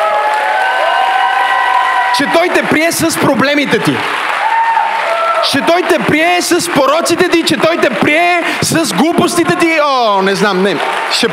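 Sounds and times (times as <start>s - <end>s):
audience applause: 0.0s - 11.3s
people cheering in an audience: 0.0s - 11.3s
speech: 2.2s - 4.4s, 5.4s - 11.3s.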